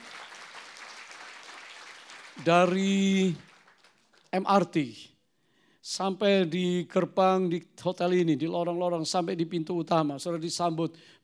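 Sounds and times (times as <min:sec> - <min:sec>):
audience applauding: 0:00.0 - 0:04.3
speech: 0:02.4 - 0:03.5, 0:04.3 - 0:05.1, 0:05.8 - 0:11.2.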